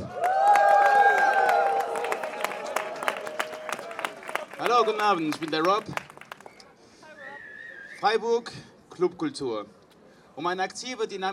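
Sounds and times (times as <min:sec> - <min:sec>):
crowd applause at a demonstration: 0:00.0 - 0:06.6
speech: 0:04.8 - 0:06.0, 0:08.0 - 0:09.8, 0:10.4 - 0:11.3.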